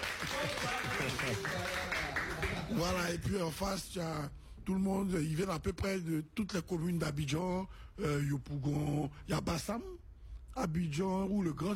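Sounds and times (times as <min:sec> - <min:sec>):
audience clapping at a gathering in Abidjan: 0:00.0 - 0:03.2
speech: 0:01.2 - 0:01.8, 0:02.7 - 0:10.0, 0:10.6 - 0:11.7.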